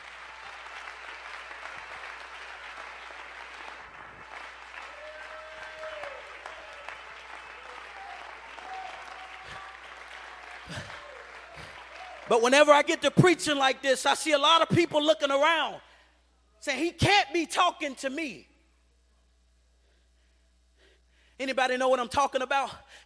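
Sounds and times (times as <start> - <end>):
audience clapping hands: 0.0 - 13.4
speech: 12.3 - 15.9, 16.6 - 18.5, 21.4 - 23.0.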